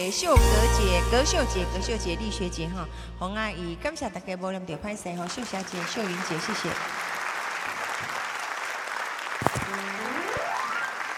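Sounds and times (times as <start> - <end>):
speech: 0.0 - 7.1
audience applause: 5.1 - 11.1.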